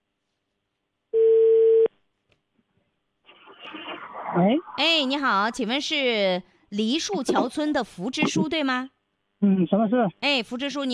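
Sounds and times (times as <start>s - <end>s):
telephone call connecting tone: 1.2s - 1.9s
speech: 4.4s - 10.9s.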